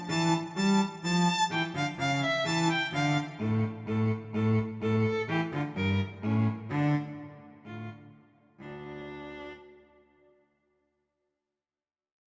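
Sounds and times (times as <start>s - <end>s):
violin and viola march tempo piece: 0.0s - 9.8s.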